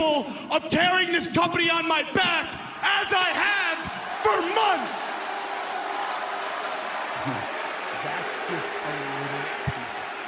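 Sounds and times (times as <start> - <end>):
speech: 0.0 - 5.0
audience booing: 3.0 - 10.2
audience clapping: 3.8 - 10.2.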